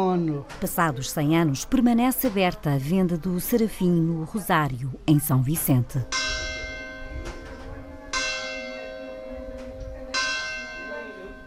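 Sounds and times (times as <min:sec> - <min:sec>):
speech: 0:00.0 - 0:06.3
church clock bell of Rosário chiming: 0:06.0 - 0:11.4.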